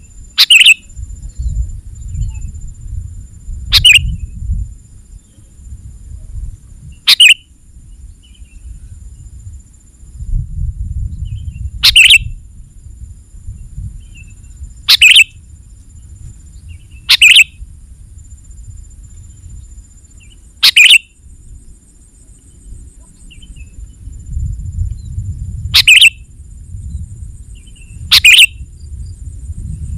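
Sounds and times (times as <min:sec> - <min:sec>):
sooty-headed bulbul chirping: 0:00.4 - 0:00.8, 0:03.7 - 0:04.1, 0:07.1 - 0:07.4, 0:11.8 - 0:12.2, 0:14.9 - 0:15.3, 0:17.1 - 0:17.5, 0:20.6 - 0:21.1, 0:25.8 - 0:26.2, 0:28.1 - 0:28.5.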